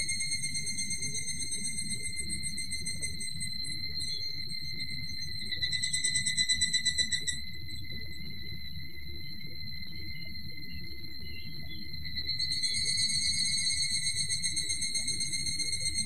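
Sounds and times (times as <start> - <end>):
evening cicada call of fast rhythmic high pulses: 0.0 - 16.0.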